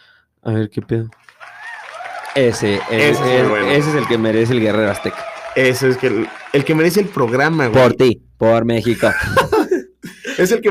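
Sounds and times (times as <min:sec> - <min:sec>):
speech: 0:00.4 - 0:01.4, 0:02.4 - 0:09.6, 0:10.4 - 0:10.7
crowd applause: 0:01.2 - 0:08.0
laughter: 0:02.6 - 0:07.1, 0:08.9 - 0:10.5.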